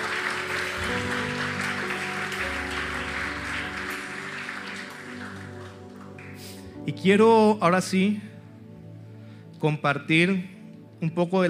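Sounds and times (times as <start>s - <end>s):
audience applause: 0.0s - 6.6s
held keyboard chords: 0.0s - 9.0s
speech: 6.9s - 8.3s, 9.6s - 11.4s.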